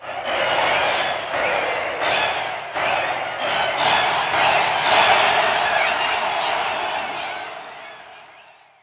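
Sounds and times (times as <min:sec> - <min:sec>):
roshambo start cheer: 0:00.0 - 0:08.8.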